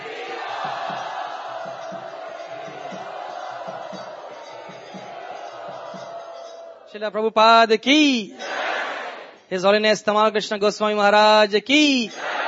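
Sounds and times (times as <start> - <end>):
crowd loudly chanting in unison as a devotional welcome: 0.0 - 6.9, 8.3 - 9.4, 12.1 - 12.4
speech: 6.9 - 8.4, 9.5 - 12.2.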